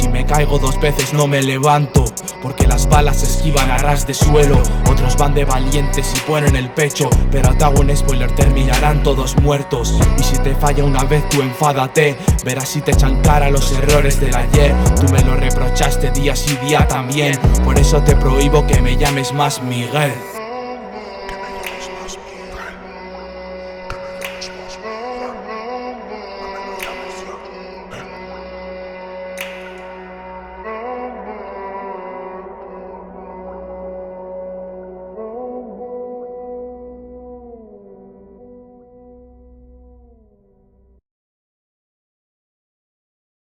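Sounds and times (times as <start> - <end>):
voices: 0.0 - 30.1
beats: 1.0 - 10.4, 11.3 - 19.3.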